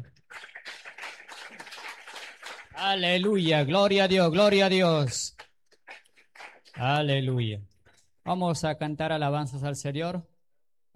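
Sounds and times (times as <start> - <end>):
church congregation clapping along during worship: 0.0 - 7.6
speech: 2.8 - 5.2, 6.8 - 10.3.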